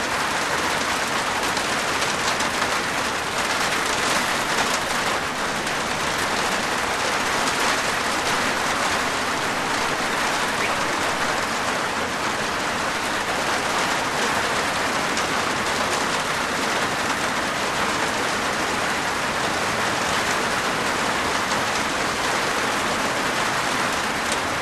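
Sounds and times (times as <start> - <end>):
medium heavy rain with large drops on a plastic veranda roof: 0.0 - 24.5
birds: 6.3 - 11.8.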